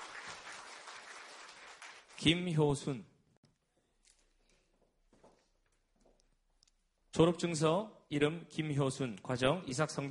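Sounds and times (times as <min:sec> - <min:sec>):
audience applause: 0:00.0 - 0:02.3
speech: 0:02.2 - 0:03.1, 0:07.2 - 0:10.0.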